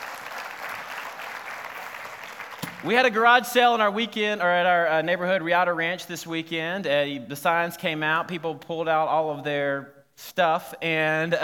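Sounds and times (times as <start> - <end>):
audience applause: 0.0 - 2.9
speech: 2.8 - 11.4.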